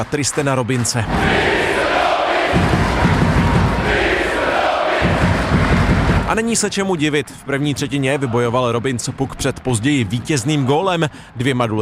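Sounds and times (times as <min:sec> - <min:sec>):
speech: 0:00.0 - 0:01.8, 0:02.5 - 0:03.2, 0:06.3 - 0:11.8
hockey fans applauding and cheering: 0:00.0 - 0:11.8
rhythmic crowd chanting: 0:01.1 - 0:06.3.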